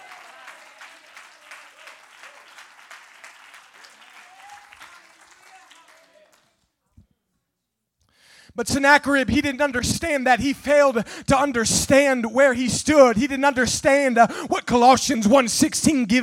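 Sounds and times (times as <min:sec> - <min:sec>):
audience clapping hands: 0:00.0 - 0:06.8
speech: 0:08.6 - 0:16.2.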